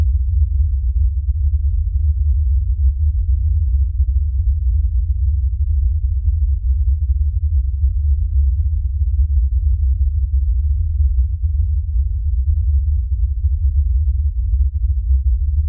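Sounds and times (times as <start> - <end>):
LFE low bass rumble: 0.0 - 15.6.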